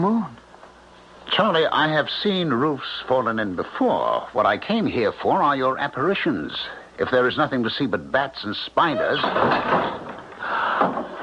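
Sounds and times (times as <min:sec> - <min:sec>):
speech: 0:00.0 - 0:00.4, 0:01.3 - 0:10.0, 0:10.8 - 0:11.2
front door slamming shut: 0:08.9 - 0:11.2.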